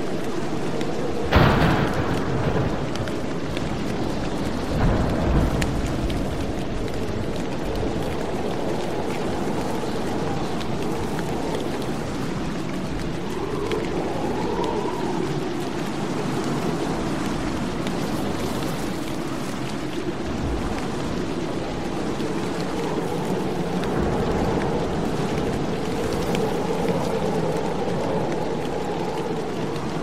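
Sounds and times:
steady dense rain: 0.0s - 30.0s
sharp thunder crack: 1.2s - 7.6s.

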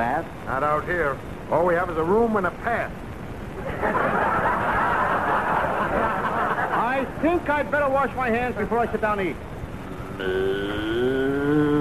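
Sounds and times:
speech: 0.0s - 4.4s, 7.0s - 9.5s, 10.2s - 11.8s
laughter: 3.6s - 7.2s
cow mooing: 10.2s - 11.8s.

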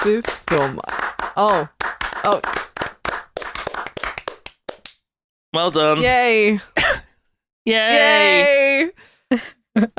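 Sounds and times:
speech: 0.0s - 2.6s, 5.5s - 6.7s, 7.6s - 9.9s
round of applause: 0.0s - 4.9s.

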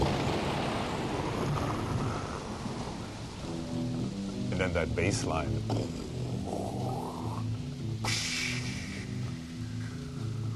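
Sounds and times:
low thunder rumbling: 0.0s - 4.6s
steady rain on a song intro: 0.0s - 10.5s
speech: 4.6s - 6.0s.

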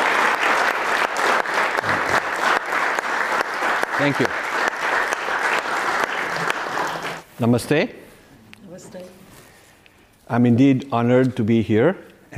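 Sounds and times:
audience applause: 0.0s - 7.3s
speech: 4.0s - 4.4s, 7.4s - 8.0s, 10.3s - 12.3s.

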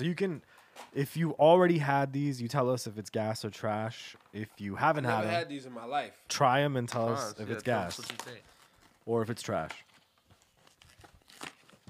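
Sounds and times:
speech: 0.0s - 9.9s
plastic packaging crinkling as a cereal box is opened: 7.7s - 11.8s.

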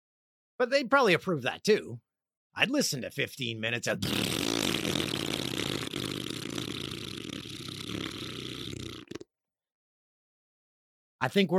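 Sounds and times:
speech: 0.6s - 2.0s, 2.6s - 4.4s, 11.2s - 11.5s
fart: 4.0s - 9.3s.

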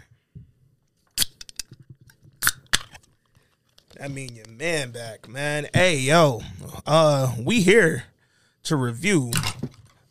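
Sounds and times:
can cracking open: 1.1s - 3.1s
speech: 4.0s - 9.6s.

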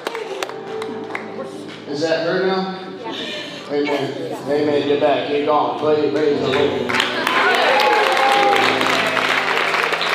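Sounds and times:
audience clapping: 0.0s - 1.9s, 6.2s - 10.1s
speech: 1.9s - 7.0s.

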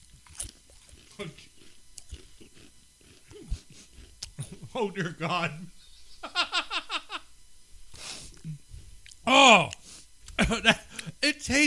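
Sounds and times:
someone biting and chewing foie gras flavored potato chips: 0.0s - 4.8s
speech: 1.2s - 1.5s, 4.8s - 5.8s, 9.3s - 9.8s, 10.5s - 10.8s, 11.4s - 11.6s
laughter: 4.4s - 7.3s, 10.4s - 11.1s.

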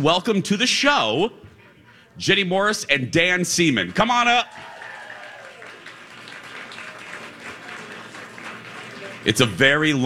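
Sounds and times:
speech: 0.0s - 1.4s, 2.2s - 4.7s, 9.2s - 10.0s
audience clapping: 3.9s - 10.0s.

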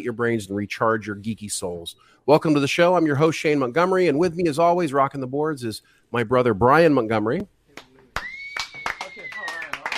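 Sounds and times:
speech: 0.0s - 7.9s
low-energy sarcastic clapping: 7.8s - 9.9s.

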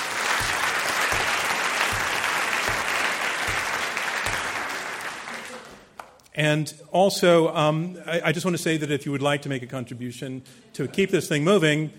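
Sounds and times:
audience applause: 0.0s - 6.0s
speech: 6.4s - 11.9s.

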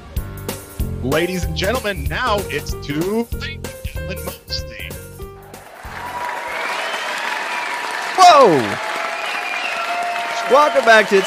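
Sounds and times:
speech: 1.0s - 4.8s, 8.2s - 8.9s, 10.5s - 11.2s
game show studio audience applauding and cheering: 5.4s - 11.2s.

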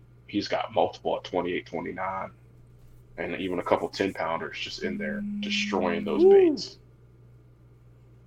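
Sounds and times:
speech: 0.3s - 2.4s, 3.2s - 6.8s
fan buzzing: 4.1s - 6.7s.

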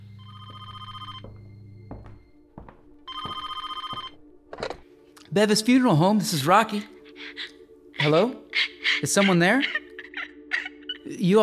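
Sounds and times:
telephone ringing with buzzing bell trills: 0.0s - 1.8s, 3.1s - 4.8s
speech: 5.3s - 8.4s, 9.0s - 9.8s, 11.2s - 11.4s.

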